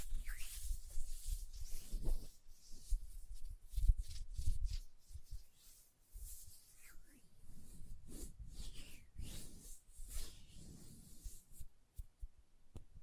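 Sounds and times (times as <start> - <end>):
hands rubbing with lotion-like squishing: 0.0 - 12.1.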